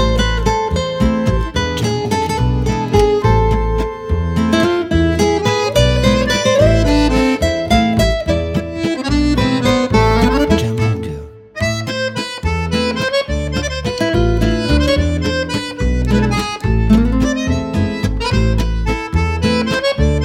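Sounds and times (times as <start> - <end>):
French cafe accordion music: 0.0 - 20.2.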